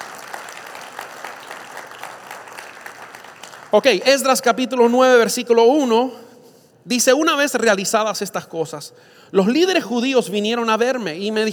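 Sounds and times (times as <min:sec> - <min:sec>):
audience applause: 0:00.0 - 0:03.8
speech: 0:03.7 - 0:06.3, 0:06.9 - 0:11.5.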